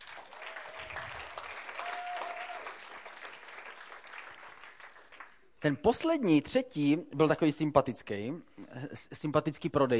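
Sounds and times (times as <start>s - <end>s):
applause: 0.0s - 5.5s
speech: 5.6s - 9.9s.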